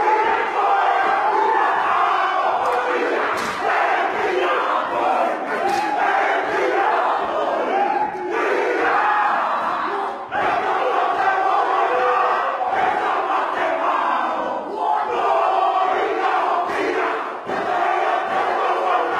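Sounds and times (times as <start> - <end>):
group shouting haka war chant in unison: 0.0 - 19.1
chest slaps and stamps: 2.6 - 3.7.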